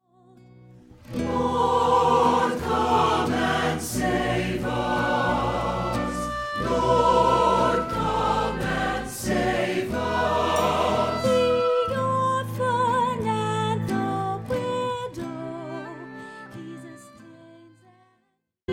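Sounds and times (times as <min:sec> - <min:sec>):
sung psalm: 0:00.9 - 0:14.5.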